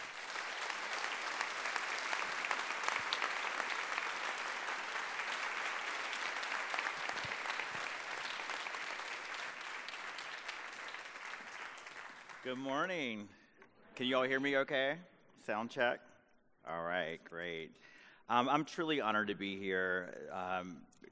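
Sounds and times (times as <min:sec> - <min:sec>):
audience clapping to welcome a speaker: 0:00.0 - 0:13.1
speech: 0:12.4 - 0:13.4, 0:14.0 - 0:20.9.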